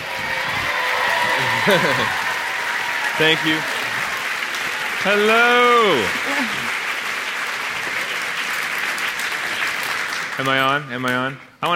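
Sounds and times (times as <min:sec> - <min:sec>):
audience cheering: 0:00.0 - 0:09.9
audience applause: 0:00.0 - 0:11.1
laughter: 0:01.2 - 0:02.5
speech: 0:01.6 - 0:02.2, 0:03.2 - 0:03.8, 0:05.0 - 0:06.6, 0:10.4 - 0:11.7.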